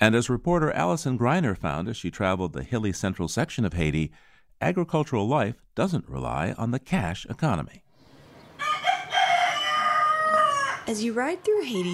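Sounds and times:
speech: 0.0 - 7.8, 10.9 - 11.9
rooster crowing: 8.5 - 11.9.

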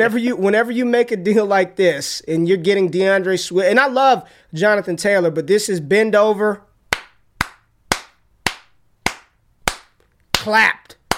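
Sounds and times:
speech: 0.0 - 6.7, 10.4 - 10.9
clapping sound effect: 6.9 - 11.1.

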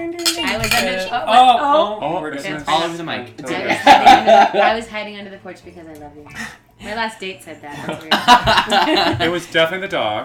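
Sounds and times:
speech: 0.0 - 10.2
glasses clinking in a toast: 0.2 - 1.3
laughter: 3.6 - 4.9, 7.7 - 9.4.

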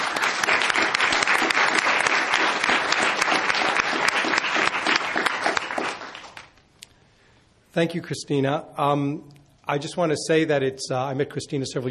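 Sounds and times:
audience applause welcoming speakers on stage: 0.0 - 6.6
speech: 7.8 - 11.8.

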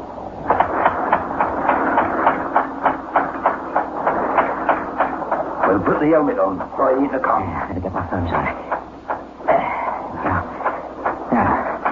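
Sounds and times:
air pump running for a diving helmet: 0.0 - 11.8
speech: 6.0 - 8.7.

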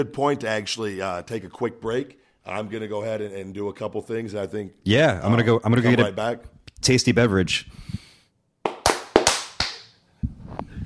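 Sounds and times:
speech: 0.0 - 8.0
hand claps: 8.6 - 10.0.

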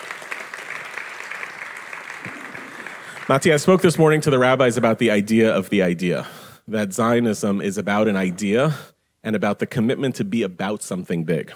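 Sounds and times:
audience applause: 0.0 - 3.8
speech: 3.3 - 11.5.

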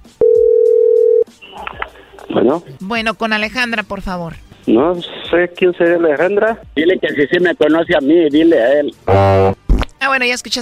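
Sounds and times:
telephone dial tone: 0.2 - 1.2
speech: 2.5 - 9.6, 10.2 - 10.5.

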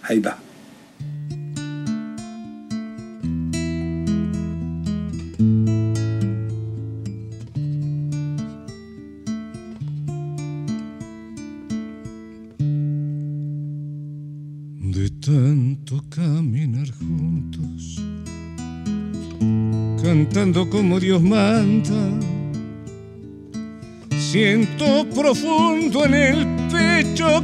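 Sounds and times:
speech: 0.1 - 0.4, 20.7 - 22.3, 24.4 - 27.4
solo guitar piece: 0.6 - 27.4.

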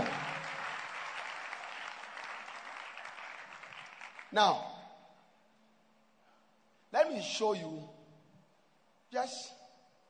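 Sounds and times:
church audience clapping: 0.0 - 4.6
speech: 4.3 - 4.7, 7.0 - 8.0, 9.1 - 9.6.

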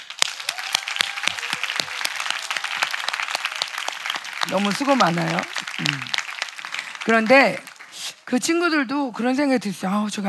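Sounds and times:
audience applause: 0.0 - 8.2
speech: 4.4 - 6.2, 7.1 - 7.7, 8.3 - 10.2.

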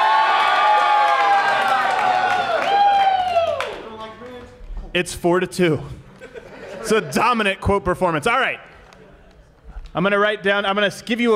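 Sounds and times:
large audience cheering and applauding: 0.0 - 4.5
speech: 5.0 - 6.0, 6.8 - 8.7, 10.0 - 11.3
laughter: 6.0 - 7.5.

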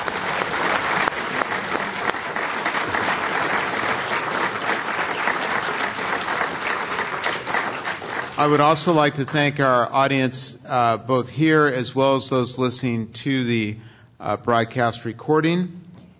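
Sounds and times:
audience applause at a Commonwealth Club of California event: 0.0 - 9.5
speech: 8.4 - 15.8.

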